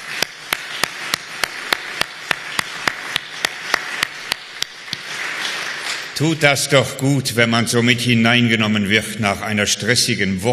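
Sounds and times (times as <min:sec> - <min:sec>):
audience applause: 0:00.0 - 0:06.4
speech: 0:06.2 - 0:10.5.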